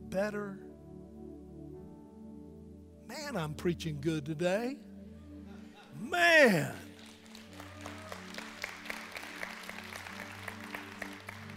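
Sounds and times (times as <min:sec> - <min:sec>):
speech: 0:00.1 - 0:00.7, 0:03.1 - 0:04.9, 0:06.0 - 0:06.9
audience applause: 0:06.5 - 0:11.5.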